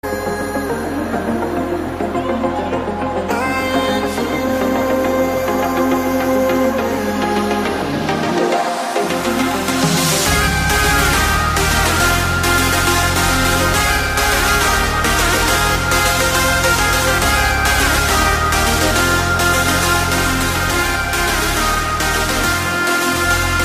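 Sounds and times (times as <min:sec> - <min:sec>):
trance ringtone: 0:00.1 - 0:23.6.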